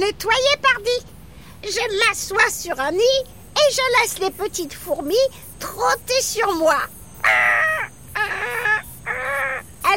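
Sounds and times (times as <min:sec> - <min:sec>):
speech: 0:00.0 - 0:07.6
carrion crow cawing: 0:07.2 - 0:09.8.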